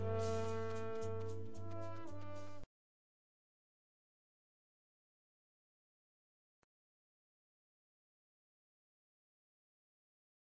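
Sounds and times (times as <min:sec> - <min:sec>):
instrumental music: 0:00.0 - 0:02.7.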